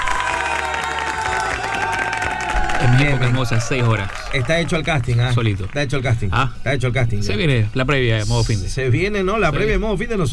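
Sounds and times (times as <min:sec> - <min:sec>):
enthusiastic crowd applause: 0:00.0 - 0:06.4
speech: 0:02.8 - 0:10.3.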